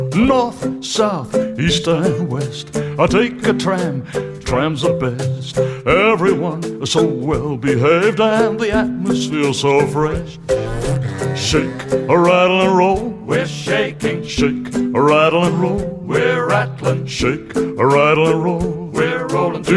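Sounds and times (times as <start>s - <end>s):
person singing: 0.1s - 19.7s.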